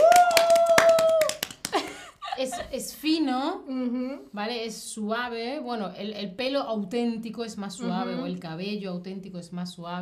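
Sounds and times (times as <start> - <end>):
people clapping hands: 0.0 - 2.1
speech: 3.0 - 9.9.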